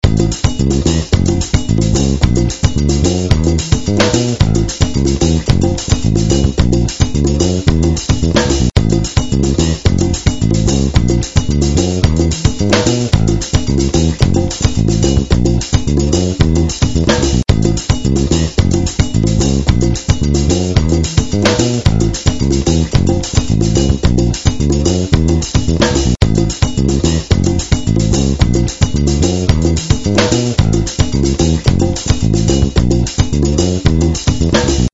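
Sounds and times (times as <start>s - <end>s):
music: 0.0s - 34.9s.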